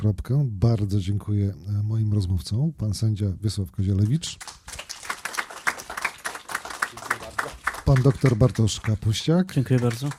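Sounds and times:
speech: 0.0s - 4.6s, 7.9s - 10.1s
audience applause: 4.4s - 10.1s.

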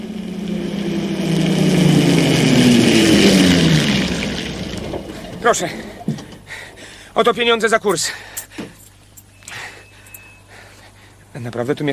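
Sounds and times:
automobile engine running as the car drives off: 0.0s - 6.8s
speech: 5.5s - 5.9s, 7.2s - 8.4s, 11.4s - 11.9s.

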